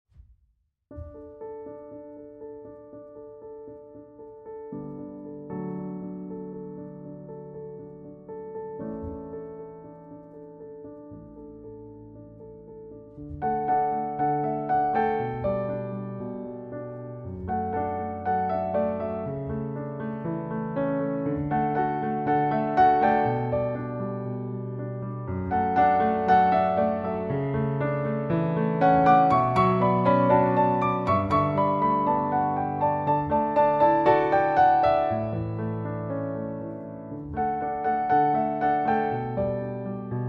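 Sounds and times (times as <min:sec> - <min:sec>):
piano music: 0:00.9 - 0:40.2.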